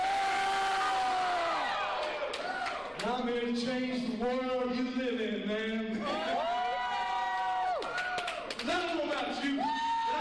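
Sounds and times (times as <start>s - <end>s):
wrestling crowd cheering: 0.0s - 3.1s, 6.0s - 10.2s
speech: 3.6s - 6.5s.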